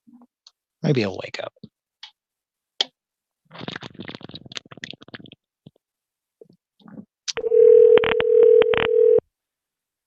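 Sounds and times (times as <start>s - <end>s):
speech: 0.8s - 1.6s
telephone dial tone: 7.4s - 9.2s.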